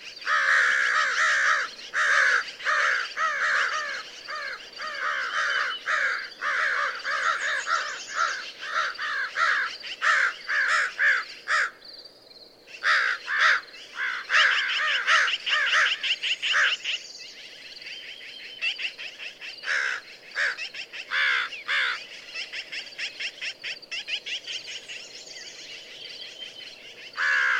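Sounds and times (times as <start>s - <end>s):
American crow calling with rough caws: 0.2s - 11.8s, 12.7s - 17.0s, 19.6s - 22.5s, 27.2s - 27.5s.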